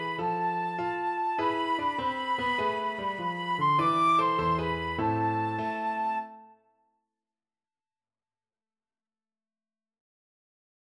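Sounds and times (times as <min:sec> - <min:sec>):
flute: 0:00.0 - 0:06.7.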